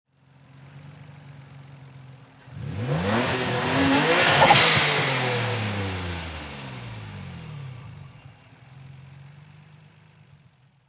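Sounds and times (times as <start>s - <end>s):
Nissan 350Z engine single rev: 2.4s - 9.8s.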